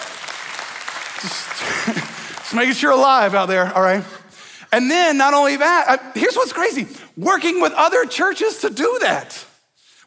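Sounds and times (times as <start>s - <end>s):
audience clapping: 0.0s - 3.7s
speech: 1.2s - 9.5s.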